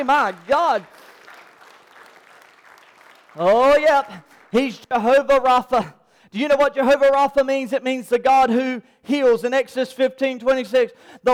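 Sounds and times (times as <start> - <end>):
speech: 0.0 - 1.1, 3.4 - 11.3
audience clapping in praise: 0.0 - 5.5.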